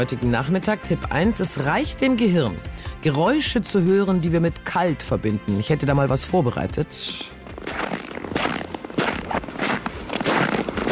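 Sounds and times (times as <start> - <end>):
speech: 0.0 - 7.4
footsteps crunching in snow: 6.9 - 10.9.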